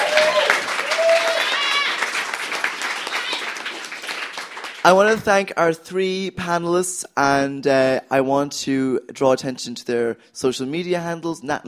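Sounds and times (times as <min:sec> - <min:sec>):
audience applause: 0:00.0 - 0:05.1
speech: 0:04.8 - 0:11.6.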